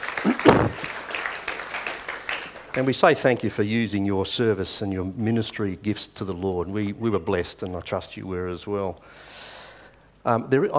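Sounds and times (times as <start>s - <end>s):
audience applause: 0.0s - 3.4s
speech: 2.8s - 9.4s, 10.2s - 10.7s.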